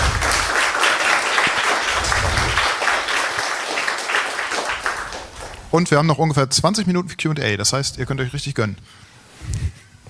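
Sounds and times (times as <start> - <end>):
audience applause: 0.0 - 5.8
speech: 5.7 - 9.6.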